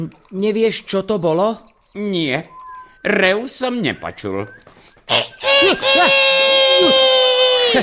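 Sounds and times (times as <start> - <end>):
speech: 0.0 - 7.8
human voice imitating a rooster crowing: 5.1 - 7.8.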